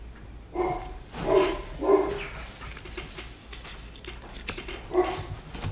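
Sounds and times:
female dog barking excitedly: 0.5 - 2.5, 4.8 - 5.5.

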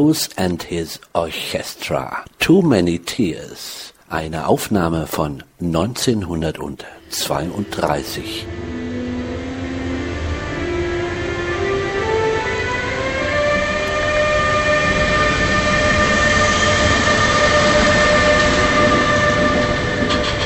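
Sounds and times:
speech: 0.0 - 8.7
train locomotive electric drive tones climbing when starting from standstill: 6.8 - 20.4
train locomotive mechanical rumble: 7.1 - 20.4.

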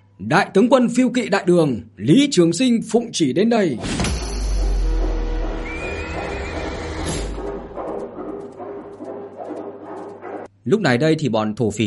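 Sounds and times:
speech: 0.2 - 4.3, 10.7 - 11.8
horse neighing: 5.6 - 7.7.

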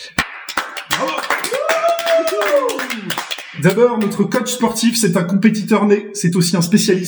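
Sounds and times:
crowd clapping welcoming guests: 0.0 - 4.4
voices calling and cheering: 0.9 - 4.5
speech: 2.3 - 7.0.

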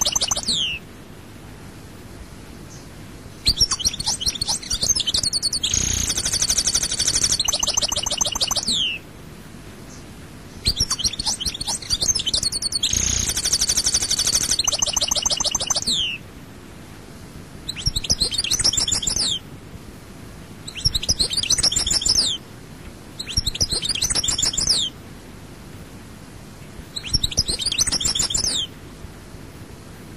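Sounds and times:
European goldfinch song: 0.0 - 0.8, 2.7 - 9.0, 9.9 - 16.2, 17.6 - 19.4, 20.6 - 22.4, 23.2 - 25.0, 26.9 - 28.7.

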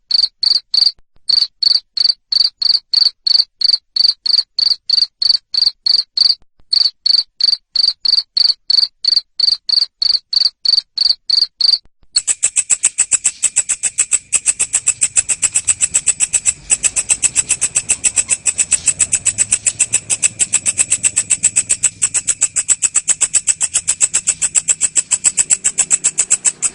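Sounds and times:
cricket chirping: 0.1 - 26.7
high buzzing trill: 12.2 - 26.7.

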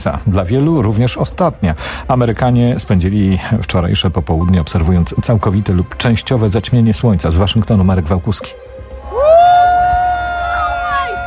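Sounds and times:
speech: 0.0 - 8.7
crowd cheering during a total solar eclipse in the United States: 9.0 - 11.2.

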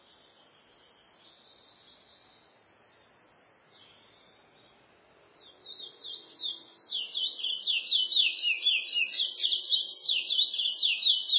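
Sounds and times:
chestnut-bellied seed finch singing: 5.7 - 11.3.

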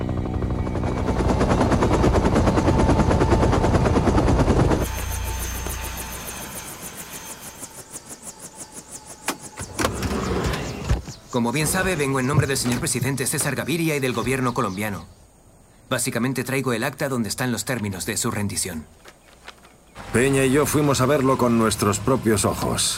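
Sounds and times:
military helicopter flying outside Medellín: 0.0 - 12.8, 20.0 - 22.9
speech: 11.4 - 15.2, 15.9 - 19.2, 20.1 - 22.9.

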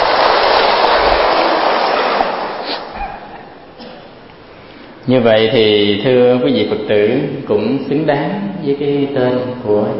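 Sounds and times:
audience applause: 0.0 - 3.6
speech: 5.1 - 9.9.

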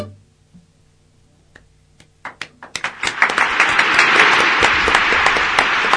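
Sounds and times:
audience applause: 2.3 - 5.9.

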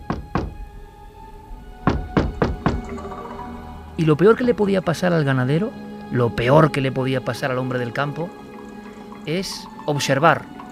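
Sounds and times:
knocking on a wooden door: 0.0 - 0.7, 1.8 - 3.1
speech: 4.0 - 8.4, 9.2 - 10.6.

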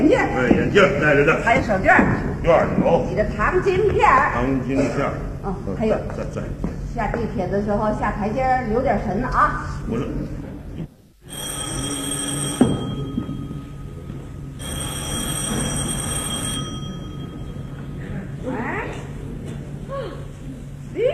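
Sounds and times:
speech: 0.0 - 10.4
low hum: 9.8 - 21.1
telephone ringing: 11.2 - 18.0.

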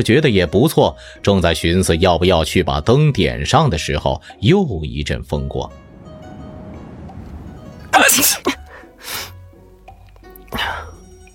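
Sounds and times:
speech: 0.0 - 5.8, 7.9 - 9.3, 10.5 - 10.8
low steady rumble: 5.4 - 9.0
two people sneezing in unison: 8.0 - 9.4, 10.5 - 11.0.

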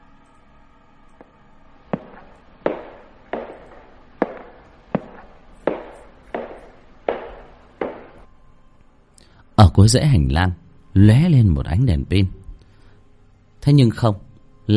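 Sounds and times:
footsteps approaching from a distance: 1.2 - 8.3
speech: 9.8 - 12.4, 13.6 - 14.7.

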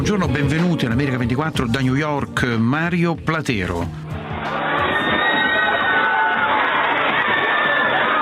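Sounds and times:
speech: 0.1 - 4.0
crowd roaring at the Luna Park amusement park on Coney Island, Brooklyn, New York: 4.1 - 8.2
people cheering: 4.1 - 8.2
children shouting: 4.2 - 8.2.

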